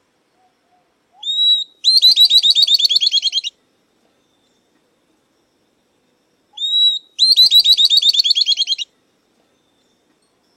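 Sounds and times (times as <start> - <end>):
Southern beardless-tyrannulet singing: 0.3 - 3.6, 6.5 - 9.0.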